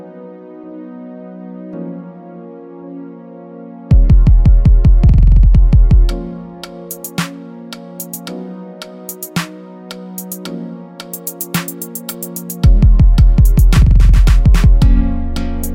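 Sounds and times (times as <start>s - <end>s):
free trap hip hop beat: 3.9s - 15.7s.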